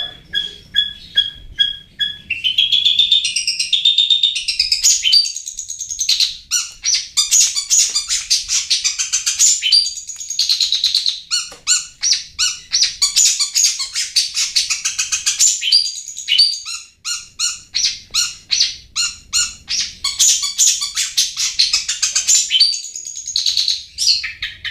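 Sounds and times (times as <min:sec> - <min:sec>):
bird chirping: 0:00.0 - 0:24.6.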